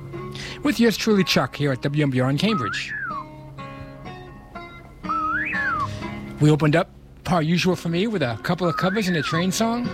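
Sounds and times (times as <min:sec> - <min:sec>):
speech: 0:00.6 - 0:03.0, 0:06.4 - 0:09.9
synthetic bird chirp: 0:02.5 - 0:03.3, 0:05.1 - 0:05.9, 0:08.7 - 0:09.6.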